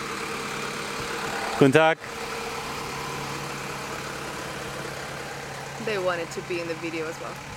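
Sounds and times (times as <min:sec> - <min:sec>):
police car engine humming in a park: 0:00.0 - 0:07.5
speech: 0:01.6 - 0:02.4, 0:05.8 - 0:07.5.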